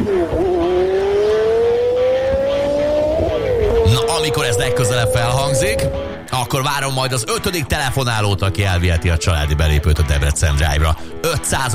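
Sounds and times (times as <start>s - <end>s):
car engine revving: 0.0s - 6.3s
speech: 4.2s - 11.7s.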